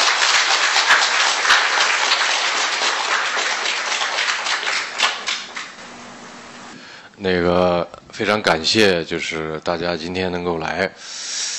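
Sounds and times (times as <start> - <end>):
audience applause: 0.0 - 6.8
speech: 7.2 - 11.2.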